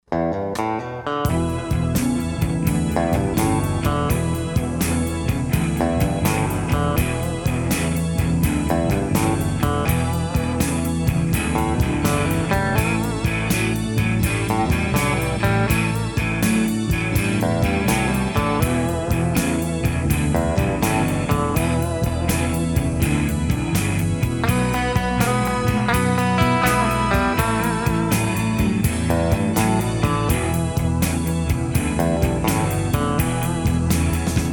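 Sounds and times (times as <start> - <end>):
triplet blues music: 0.0 - 34.5.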